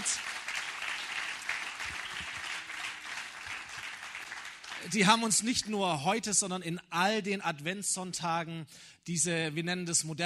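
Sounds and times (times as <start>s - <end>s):
crowd applauding: 0.0s - 5.2s
speech: 4.8s - 10.2s.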